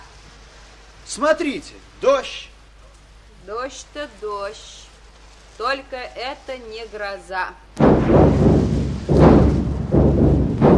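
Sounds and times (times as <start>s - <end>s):
speech: 1.1s - 2.5s, 3.4s - 4.9s, 5.6s - 7.6s
artillery shell explosion: 7.8s - 10.7s.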